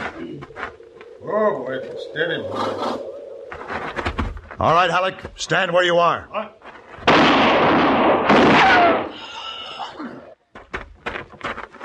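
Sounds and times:
speech: 1.3s - 3.1s, 4.6s - 6.6s
gunshots: 7.0s - 9.2s.

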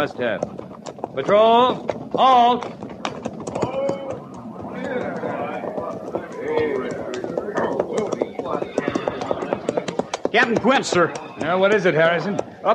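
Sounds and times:
speech: 0.0s - 2.8s, 10.3s - 12.7s
hooves of a rider's horse arriving: 0.0s - 12.7s.

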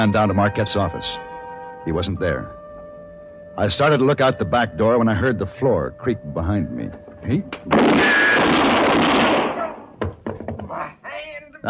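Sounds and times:
speech: 0.0s - 2.6s, 3.6s - 8.8s
gunshot: 7.7s - 10.0s.

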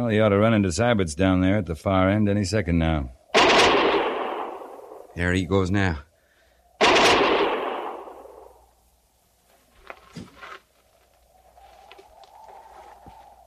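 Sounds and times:
speech: 0.0s - 3.2s, 5.2s - 6.1s
gunfire in a standoff: 3.3s - 5.1s, 6.8s - 8.6s.

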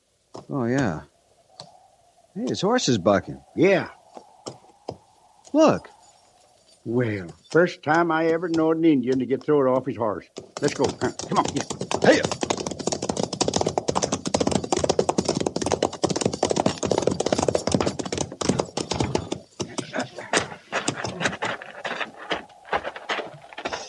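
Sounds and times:
speech: 0.5s - 1.1s, 2.4s - 4.0s, 5.5s - 5.9s, 6.8s - 12.4s
rattlesnake rattling: 4.0s - 8.1s, 10.3s - 22.8s.

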